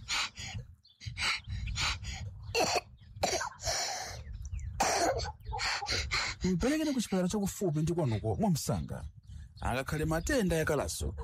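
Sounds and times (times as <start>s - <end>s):
child's raspy gasping breaths: 0.0s - 8.4s
child coughing: 2.5s - 3.9s, 4.7s - 5.4s
speech: 6.4s - 11.2s.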